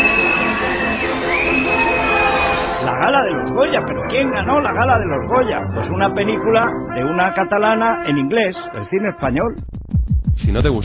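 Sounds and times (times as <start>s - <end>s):
audience applause in the Teatro Campoamor for the Goya gala: 0.0s - 2.8s
speech: 3.2s - 9.8s, 10.4s - 10.8s.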